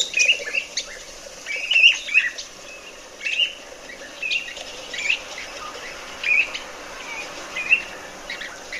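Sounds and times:
birdsong with trills played from a recording: 0.0 - 8.7.

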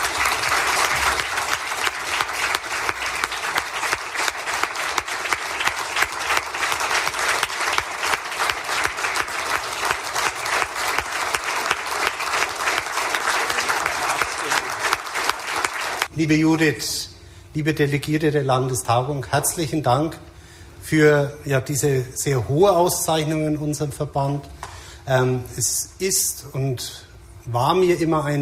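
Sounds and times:
audience applause: 0.0 - 16.1
speech: 16.2 - 20.3, 20.9 - 28.4.

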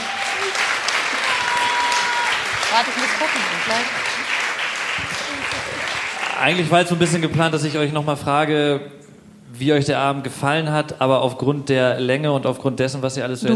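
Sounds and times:
audience applause: 0.0 - 7.6
speech: 2.7 - 4.2, 6.4 - 9.0, 9.6 - 13.5.

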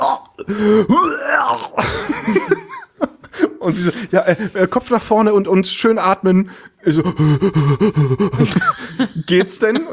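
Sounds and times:
voice imitating a gag reflex during a dental impression: 0.0 - 2.0
speech: 0.4 - 2.6, 3.6 - 9.9
laughter: 1.8 - 4.5, 7.0 - 9.4.

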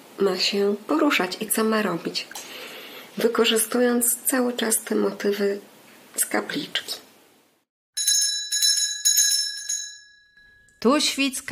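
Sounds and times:
speech: 0.2 - 2.6, 3.2 - 7.0, 10.8 - 11.5
small bell ringing: 8.0 - 11.0.

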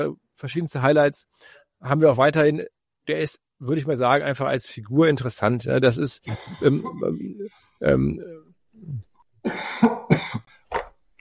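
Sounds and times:
speech: 0.0 - 10.5
person coughing: 6.3 - 7.0, 8.8 - 10.6
voiced throat clearing: 8.8 - 10.6.

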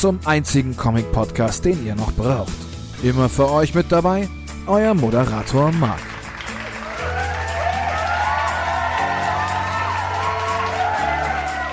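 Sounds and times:
speech: 0.0 - 6.1
crowd clapping: 5.2 - 11.7
crowd cheering with whoops and yells: 6.5 - 11.7.

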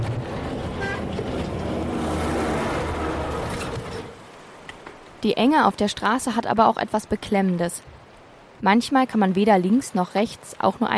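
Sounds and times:
military truck roaring past: 0.0 - 4.2
speech: 5.2 - 7.9, 8.6 - 10.9.

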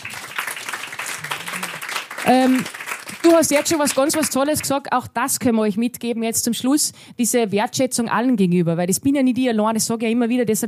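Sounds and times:
applause: 0.0 - 4.8
speech: 2.2 - 10.6.

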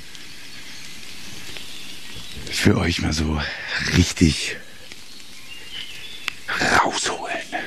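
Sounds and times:
steady rain: 0.0 - 7.6
speech: 2.5 - 4.6.

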